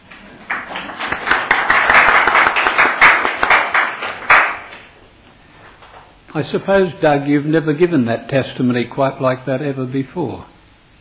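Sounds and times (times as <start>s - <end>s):
audience clapping: 0.0s - 5.0s
speech: 6.4s - 10.5s.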